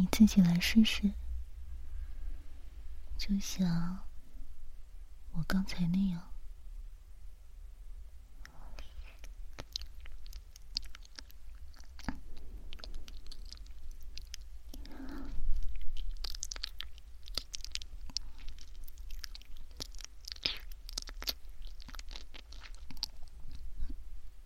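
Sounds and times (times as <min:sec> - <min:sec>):
speech: 0:00.1 - 0:01.2, 0:03.3 - 0:04.1, 0:05.3 - 0:06.3
biting with teeth: 0:09.1 - 0:23.7.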